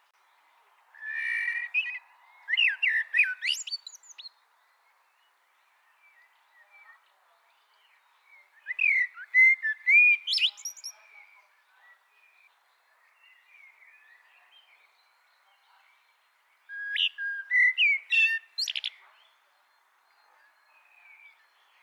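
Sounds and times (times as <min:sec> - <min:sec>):
common blackbird Turdus merula singing: 0:01.0 - 0:04.4, 0:05.9 - 0:12.5, 0:13.1 - 0:19.4.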